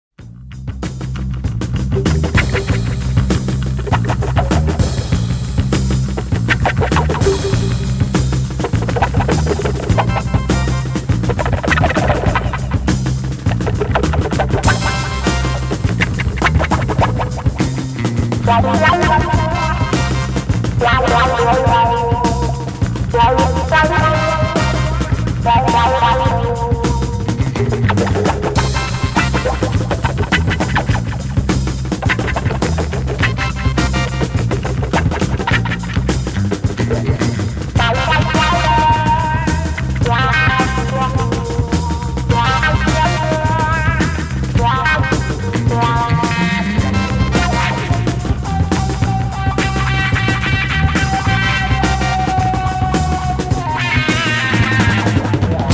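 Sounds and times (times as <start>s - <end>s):
percussion: 0.7s - 55.7s.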